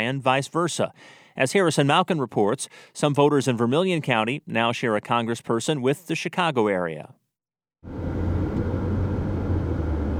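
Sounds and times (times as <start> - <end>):
speech: 0.0 - 7.2, 7.8 - 8.2
car driving along Illinois Route 1 south of Danville: 7.9 - 10.1.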